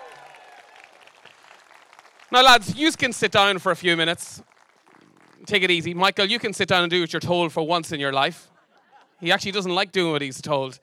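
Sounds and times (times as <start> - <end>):
round of applause: 0.0 - 6.2
speech: 2.3 - 4.5, 5.4 - 8.5, 9.2 - 10.8
laughter: 8.4 - 9.4.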